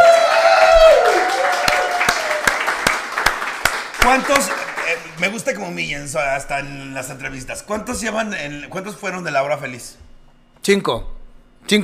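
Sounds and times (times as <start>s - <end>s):
slow hand claps: 0.0s - 5.3s
speech: 4.2s - 10.0s, 10.6s - 11.8s.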